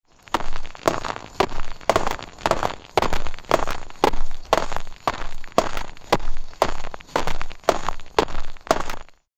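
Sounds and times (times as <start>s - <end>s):
realistic battlefield sounds: 0.3s - 9.1s.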